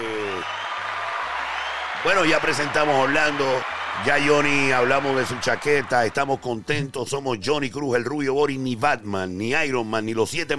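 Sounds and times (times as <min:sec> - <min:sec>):
audience applause: 0:00.0 - 0:06.5
speech: 0:02.0 - 0:10.5.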